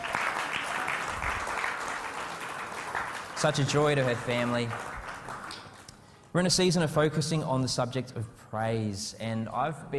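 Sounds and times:
audience applause: 0:00.0 - 0:05.9
speech: 0:03.4 - 0:04.9, 0:06.3 - 0:09.9.

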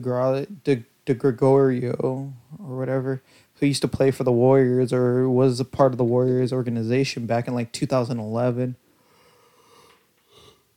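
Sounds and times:
speech: 0:00.0 - 0:08.8
person yawning into the microphone: 0:09.2 - 0:10.7.

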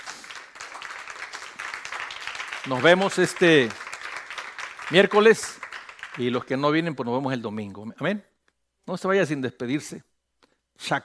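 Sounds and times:
audience applause: 0:00.0 - 0:06.5
speech: 0:02.6 - 0:03.8, 0:04.9 - 0:05.6, 0:06.2 - 0:08.3, 0:08.9 - 0:10.1, 0:10.8 - 0:11.0.

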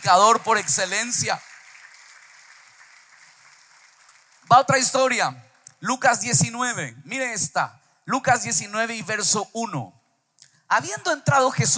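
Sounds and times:
speech: 0:00.0 - 0:01.5, 0:04.5 - 0:10.0, 0:10.7 - 0:11.7
audience applauding: 0:00.0 - 0:05.0.

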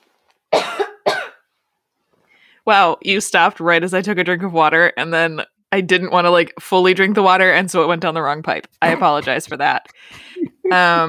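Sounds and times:
coughing: 0:00.5 - 0:01.4, 0:08.8 - 0:11.0
speech: 0:02.6 - 0:11.0.

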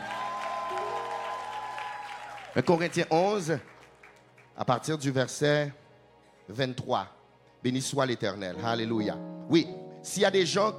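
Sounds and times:
French-speaking church congregation applauding: 0:00.0 - 0:05.2
speech: 0:02.6 - 0:03.7, 0:04.6 - 0:05.8, 0:06.5 - 0:10.7.

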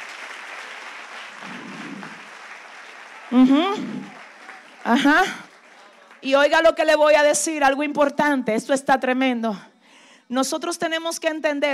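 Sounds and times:
audience applause: 0:00.0 - 0:06.6
speech: 0:03.3 - 0:04.2, 0:04.8 - 0:05.4, 0:06.2 - 0:09.7, 0:10.3 - 0:11.7.

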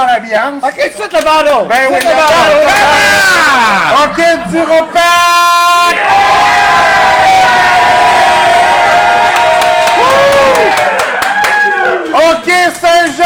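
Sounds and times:
speech: 0:00.2 - 0:05.2
crowd cheering and yelling in noise contest: 0:02.1 - 0:12.5
high-pitched screams and whoops: 0:05.9 - 0:12.1.

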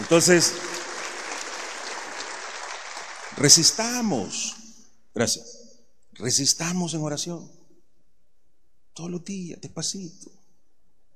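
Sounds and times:
audience applauding: 0:00.0 - 0:04.6
speech: 0:00.1 - 0:00.8, 0:03.4 - 0:04.6, 0:05.2 - 0:05.6, 0:06.2 - 0:07.6, 0:09.0 - 0:10.4.

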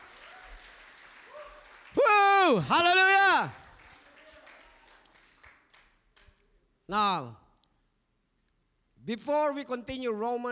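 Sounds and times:
audience applause: 0:00.0 - 0:06.3
speech: 0:02.5 - 0:03.6, 0:06.9 - 0:07.4, 0:09.1 - 0:10.4.

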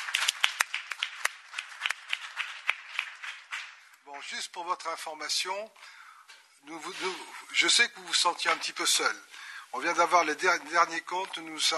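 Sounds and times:
audience applause: 0:00.0 - 0:03.8
speech: 0:04.1 - 0:06.0, 0:06.6 - 0:11.7.

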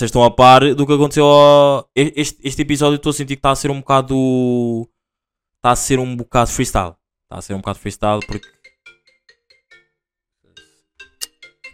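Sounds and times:
speech: 0:00.0 - 0:04.9, 0:05.6 - 0:08.6
phone electronic ringtone for an incoming call: 0:08.1 - 0:11.7
louder brighter notes: 0:08.2 - 0:11.7.

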